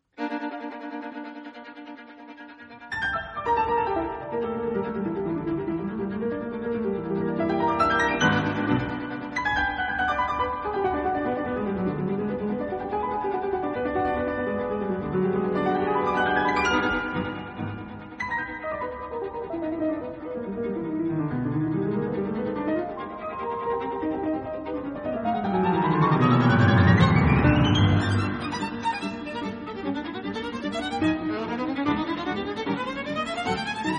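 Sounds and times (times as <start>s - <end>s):
violin and piano sonata: 0.0s - 33.9s.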